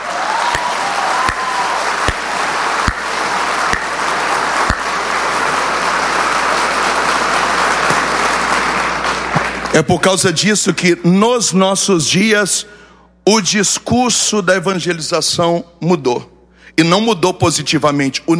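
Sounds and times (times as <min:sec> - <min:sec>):
applause: 0:00.0 - 0:10.1
sharp individual claps: 0:00.4 - 0:09.8
speech: 0:09.8 - 0:18.3.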